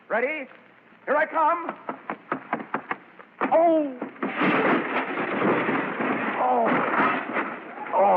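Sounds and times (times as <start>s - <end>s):
speech: 0.1s - 2.1s, 3.6s - 4.5s
sharp knocks: 1.7s - 7.6s
table with dishes knocked over: 4.2s - 8.0s.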